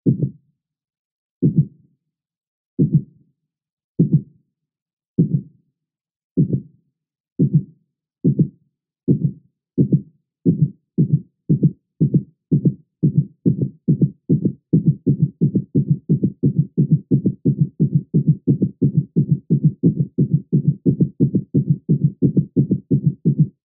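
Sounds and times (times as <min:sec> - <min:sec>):
low heartbeat speeding up: 0:00.1 - 0:00.4, 0:01.4 - 0:01.7, 0:02.8 - 0:03.1, 0:04.0 - 0:04.3, 0:05.2 - 0:05.5, 0:06.4 - 0:06.7, 0:07.4 - 0:08.5, 0:09.1 - 0:23.6.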